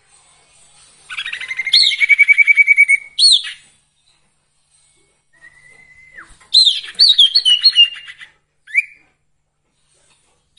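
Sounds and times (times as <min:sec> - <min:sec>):
song: 0:01.1 - 0:03.7, 0:05.4 - 0:09.0.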